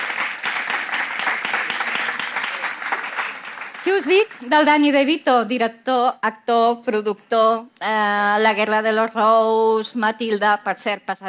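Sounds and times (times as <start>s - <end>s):
audience clapping: 0.0s - 4.7s
speech: 3.8s - 11.2s.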